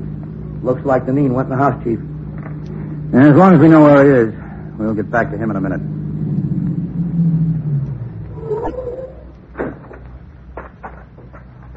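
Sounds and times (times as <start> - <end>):
police squad car arriving: 0.0 - 11.7
speech: 0.6 - 2.1, 3.1 - 6.0.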